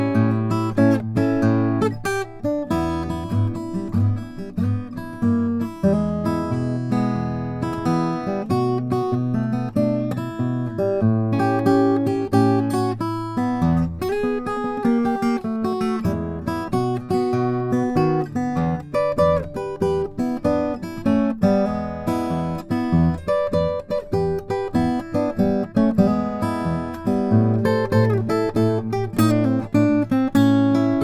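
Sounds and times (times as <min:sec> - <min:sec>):
1944 Martin 0-18 mahogany guitar playing blues: 0:00.0 - 0:31.0.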